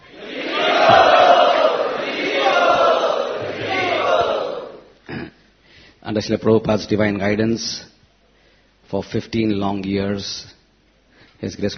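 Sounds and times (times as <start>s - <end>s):
assembly of Vaishnavas cheering to welcome a guest: 0.0s - 5.0s
speech: 6.1s - 7.9s, 8.9s - 10.6s, 11.4s - 11.7s.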